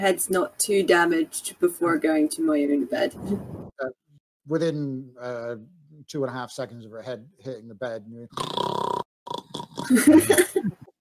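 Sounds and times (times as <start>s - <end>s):
speech: 0.0s - 8.7s, 9.9s - 10.8s
person imitating snoring: 8.3s - 10.0s
laughter: 9.9s - 10.9s.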